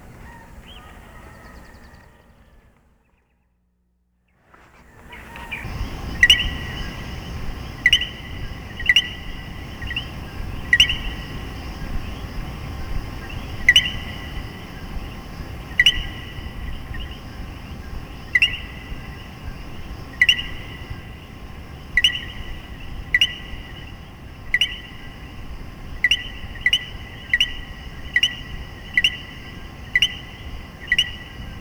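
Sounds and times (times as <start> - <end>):
common coquí calling: 0.0 - 3.2, 4.7 - 31.5.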